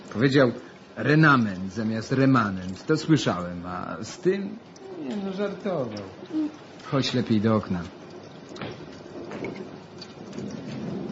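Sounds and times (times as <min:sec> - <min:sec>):
heavy rain pouring: 0:00.0 - 0:11.1
speech: 0:00.2 - 0:08.0.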